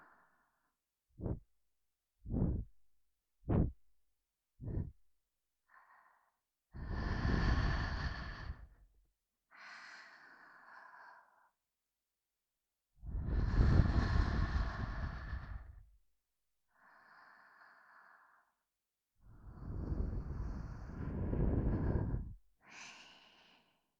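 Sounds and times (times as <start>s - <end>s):
person breathing in the left ear: 1.2s - 1.4s, 2.3s - 2.7s, 3.5s - 3.8s, 4.6s - 4.9s, 5.7s - 8.8s, 9.5s - 11.6s, 13.2s - 15.8s, 16.8s - 18.6s, 19.4s - 23.9s.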